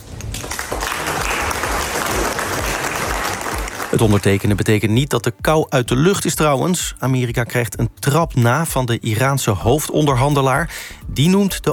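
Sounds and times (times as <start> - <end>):
applause at a formal dinner: 0.0 - 4.6
speech: 3.9 - 11.7.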